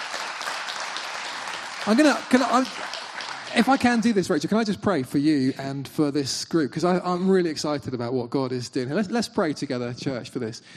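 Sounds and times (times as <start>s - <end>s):
audience applause: 0.0s - 4.5s
speech: 1.8s - 10.7s.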